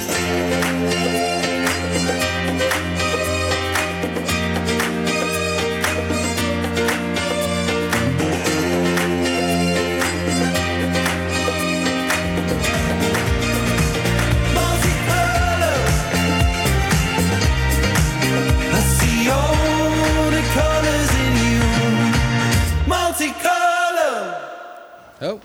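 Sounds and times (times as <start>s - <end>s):
pop song single with full band: 0.0s - 24.4s.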